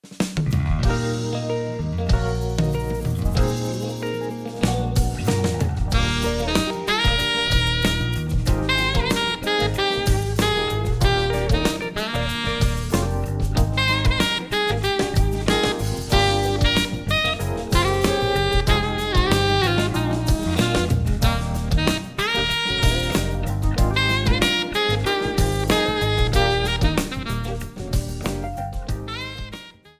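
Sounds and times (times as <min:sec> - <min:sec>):
soul music arrangement: 0:00.4 - 0:29.9.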